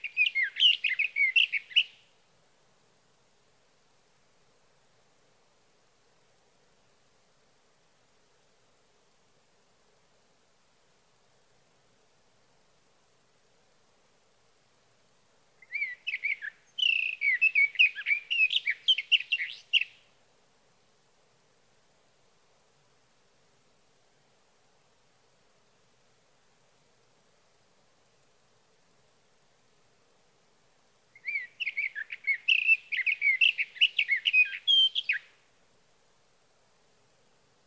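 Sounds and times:
sage thrasher: 0:00.0 - 0:01.9, 0:15.6 - 0:20.0, 0:31.2 - 0:35.3.

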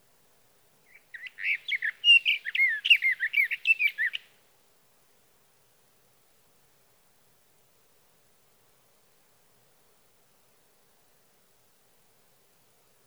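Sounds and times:
sage thrasher: 0:00.9 - 0:04.3.

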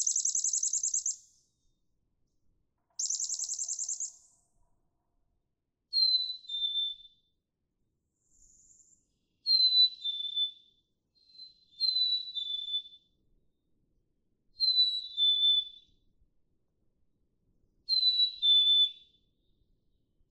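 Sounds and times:
Black-capped chickadee whistled song: 0:00.0 - 0:01.4, 0:03.0 - 0:04.3, 0:05.9 - 0:07.3, 0:09.4 - 0:13.1, 0:14.6 - 0:16.0, 0:17.9 - 0:19.3.

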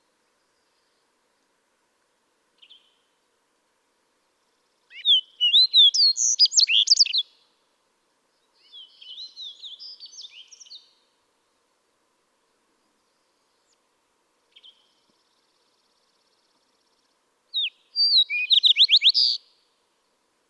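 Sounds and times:
Fox Sparrow song: 0:02.6 - 0:03.2, 0:04.4 - 0:07.6, 0:08.4 - 0:11.2, 0:14.5 - 0:19.8.

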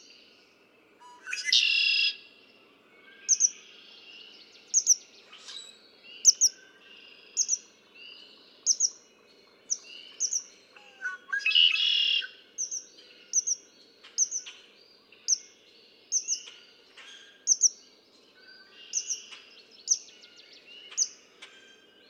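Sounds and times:
red-winged blackbird trilling and chipping: 0:01.2 - 0:02.2, 0:03.2 - 0:03.7, 0:04.7 - 0:06.6, 0:07.3 - 0:07.7, 0:08.6 - 0:09.0, 0:09.7 - 0:17.8, 0:18.6 - 0:22.0.

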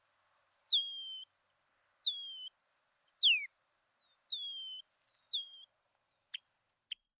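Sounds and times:
red-winged blackbird descending whistles: 0:00.7 - 0:01.3, 0:02.1 - 0:02.5, 0:04.3 - 0:05.6.

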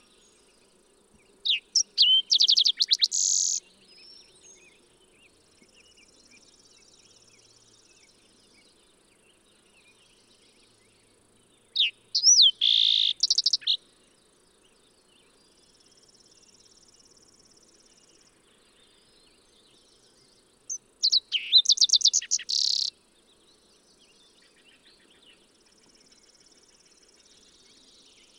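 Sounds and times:
Fox Sparrow calling: 0:01.5 - 0:03.6, 0:11.8 - 0:13.8, 0:20.7 - 0:22.9.

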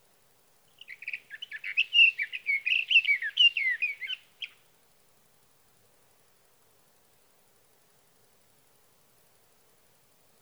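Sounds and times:
Sage thrasher song: 0:00.8 - 0:04.6.

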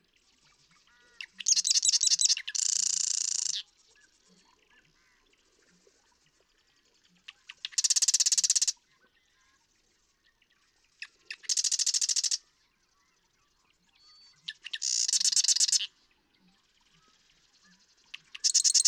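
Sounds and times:
Marsh Wren buzzy trill song: 0:00.4 - 0:05.3, 0:07.2 - 0:08.8, 0:10.9 - 0:18.8.

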